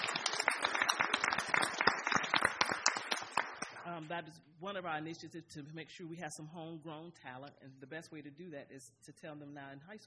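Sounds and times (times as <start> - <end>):
audience applause: 0.0 - 3.8
speech: 4.1 - 10.0.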